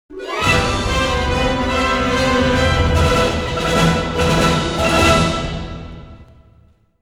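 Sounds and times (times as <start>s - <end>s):
music: 0.1s - 7.0s.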